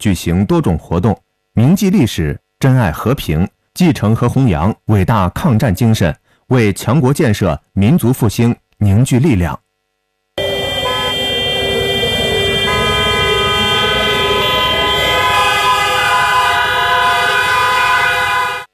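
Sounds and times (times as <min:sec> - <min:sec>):
speech: 0:00.0 - 0:09.6
air raid siren over city: 0:10.4 - 0:18.7.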